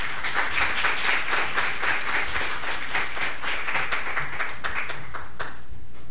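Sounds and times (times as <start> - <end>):
welcoming applause: 0.0 - 5.7.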